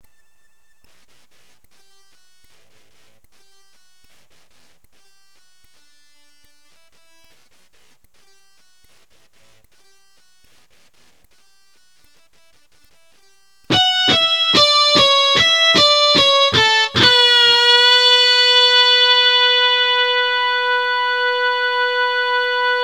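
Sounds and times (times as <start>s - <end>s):
electric guitar: 13.7s - 22.8s.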